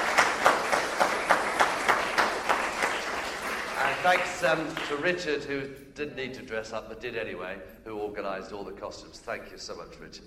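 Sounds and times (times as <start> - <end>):
audience applause: 0.0 - 5.1
speech: 4.0 - 10.2.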